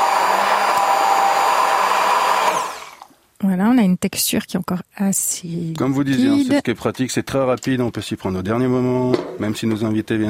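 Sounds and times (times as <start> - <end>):
blender puréeing fruit and herbs at full speed: 0.0 - 3.1
speech: 3.7 - 10.2.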